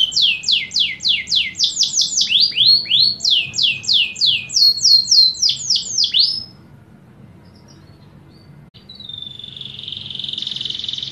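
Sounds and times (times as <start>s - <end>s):
canary singing descending whistled notes: 0.0s - 6.6s, 7.5s - 11.0s.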